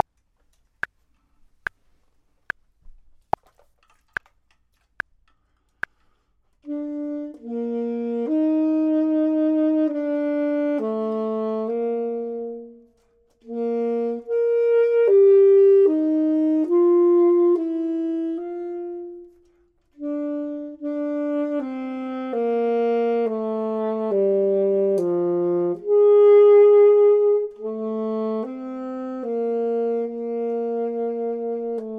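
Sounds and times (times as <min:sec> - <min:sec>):
clarinet: 0:06.6 - 0:31.9
saxophone: 0:06.6 - 0:31.9.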